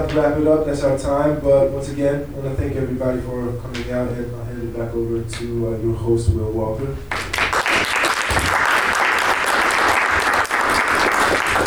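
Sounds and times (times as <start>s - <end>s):
speech: 0.0s - 7.3s
large audience applause for a panel: 7.1s - 11.6s.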